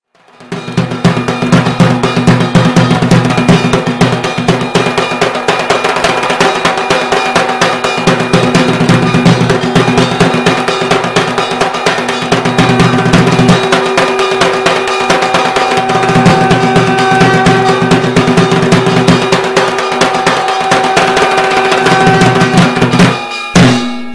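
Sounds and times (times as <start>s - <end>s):
dhak drumming ringtone: 0.1s - 24.1s.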